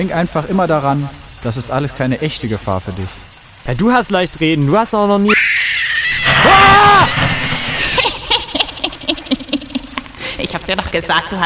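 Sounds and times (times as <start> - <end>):
speech: 0.0 - 5.4, 10.7 - 11.4
scream: 5.3 - 8.0
laughter: 6.5 - 10.7.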